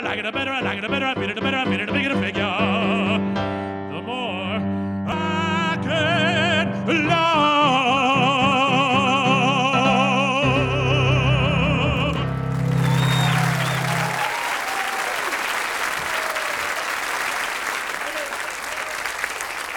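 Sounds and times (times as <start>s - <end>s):
person singing with accompaniment: 0.0s - 12.8s
speech: 0.1s - 2.6s
audience applause: 12.2s - 19.7s.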